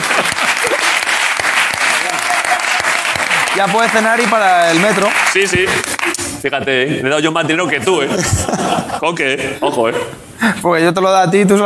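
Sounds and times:
laughter: 0:00.0 - 0:01.1, 0:07.2 - 0:10.1
audience applause: 0:00.0 - 0:06.4
speech: 0:03.6 - 0:11.6.

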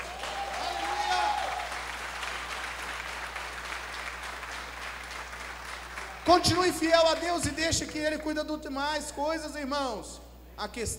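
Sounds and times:
audience applauding: 0:00.0 - 0:07.4
speech: 0:06.3 - 0:10.9.

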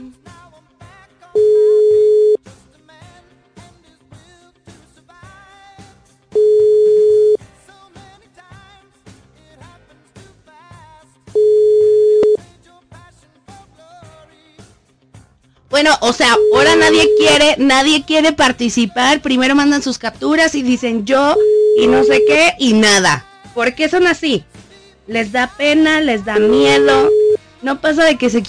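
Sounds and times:
telephone tone while dialing a call: 0:01.4 - 0:02.4, 0:06.4 - 0:07.4, 0:11.4 - 0:12.4, 0:16.2 - 0:17.6, 0:21.3 - 0:22.6, 0:26.4 - 0:27.4
speech: 0:15.8 - 0:24.5, 0:25.1 - 0:28.4.

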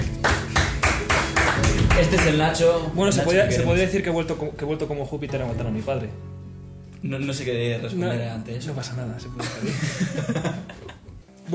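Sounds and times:
steady rhythmic clapping: 0:00.0 - 0:04.0
speech: 0:02.0 - 0:06.4, 0:07.0 - 0:10.8
laughter: 0:09.4 - 0:11.2.

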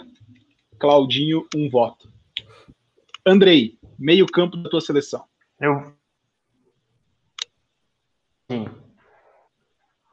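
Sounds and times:
choppy garbled voice on an online call: 0:00.0 - 0:06.0, 0:08.5 - 0:09.5
speech: 0:00.8 - 0:02.1, 0:03.2 - 0:06.0, 0:08.5 - 0:08.8.

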